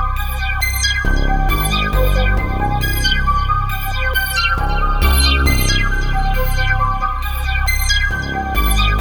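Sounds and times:
trap beat: 0.1s - 9.0s.

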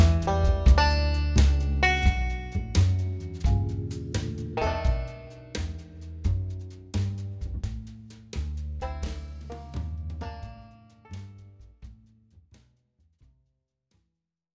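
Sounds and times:
blue banjo: 0.0s - 6.4s, 8.8s - 11.4s.

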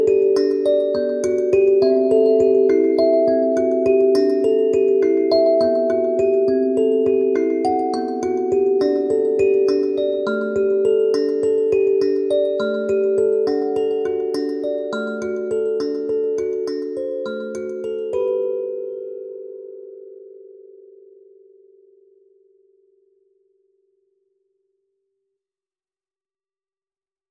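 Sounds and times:
dark kalimba: 0.0s - 19.0s.

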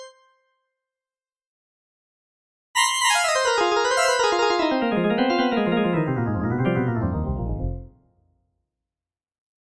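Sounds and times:
synthesizer organ test: 2.8s - 8.0s.

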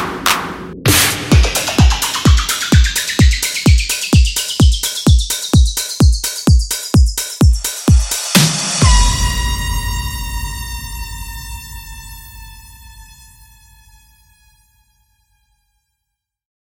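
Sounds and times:
drums: 0.0s - 11.2s.

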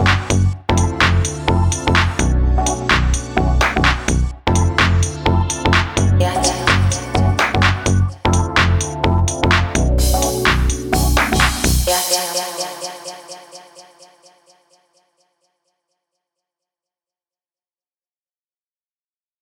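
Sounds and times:
90s garage music: 0.0s - 13.4s.

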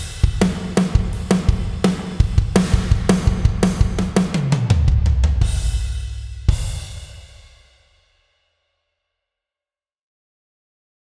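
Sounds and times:
gospel drumming: 0.0s - 7.1s.

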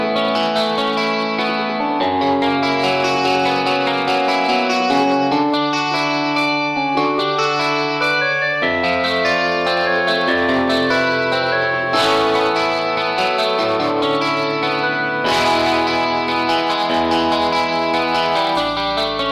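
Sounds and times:
subtle electric guitar: 0.0s - 19.2s.

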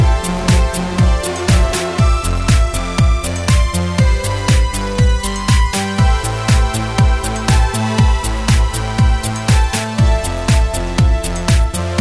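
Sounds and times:
monophonic bass synth: 0.0s - 11.9s.

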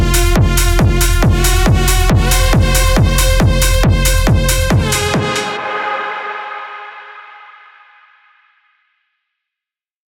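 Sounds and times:
techno synth pads: 0.0s - 7.5s.

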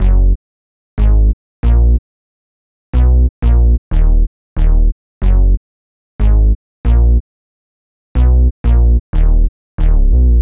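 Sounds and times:
bass: 0.0s - 0.4s, 1.0s - 2.0s, 2.9s - 5.6s, 6.2s - 7.3s, 8.1s - 10.4s.

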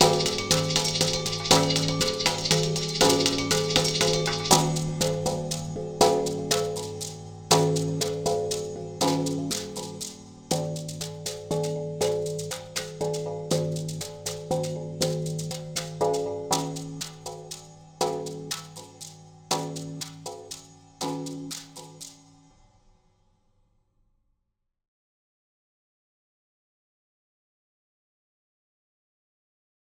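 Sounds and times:
3 against 2 polyrhythm loops: 0.0s - 22.2s.

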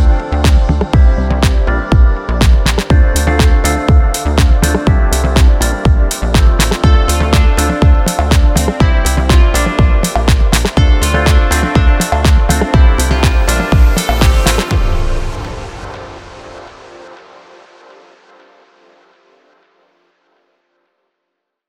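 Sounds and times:
house music drums: 0.0s - 17.3s.

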